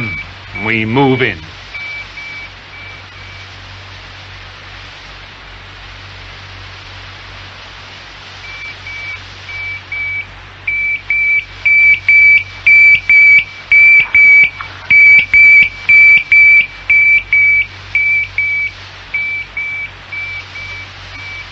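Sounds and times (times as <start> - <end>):
radio tracking receiver beeping: 0.0 - 3.4, 8.4 - 21.5
low constant hum: 0.0 - 21.5
speech: 0.6 - 1.6.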